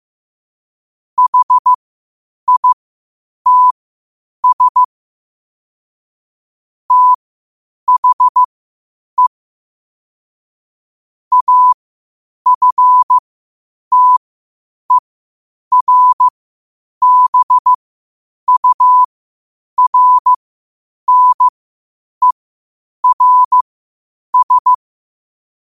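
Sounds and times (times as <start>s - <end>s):
morse code at 5 wpm: 1.2s - 1.7s, 2.5s - 2.8s, 3.5s - 3.8s, 4.4s - 4.9s, 6.9s - 7.2s, 7.9s - 8.5s, 11.3s - 11.8s, 12.5s - 13.2s, 13.9s - 14.2s, 15.7s - 16.3s, 17.0s - 17.8s, 18.5s - 19.1s, 19.8s - 20.4s, 21.1s - 21.5s, 23.0s - 23.6s, 24.3s - 24.8s.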